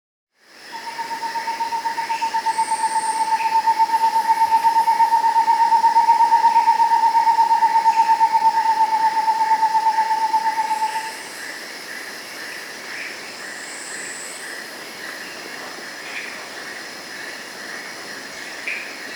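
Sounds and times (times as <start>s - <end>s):
Rufescent screech owl song in the Andes: 0.7s - 11.3s.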